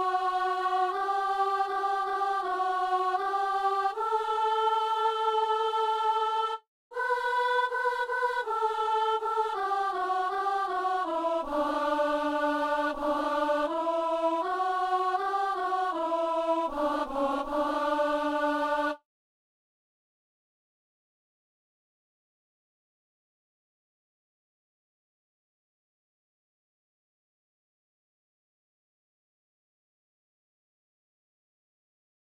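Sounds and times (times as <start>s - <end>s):
alto voice singing a chant: 0.0s - 19.0s.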